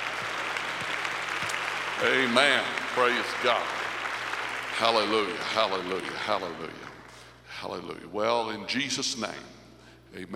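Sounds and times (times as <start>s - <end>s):
audience applause: 0.0s - 7.2s
speech: 2.0s - 3.8s, 4.8s - 6.9s, 7.6s - 10.3s.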